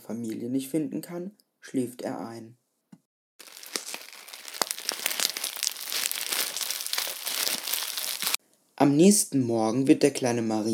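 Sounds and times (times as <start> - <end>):
speech: 0.1 - 2.6, 8.8 - 10.7
dry leaves rustling and crackling: 3.4 - 8.4.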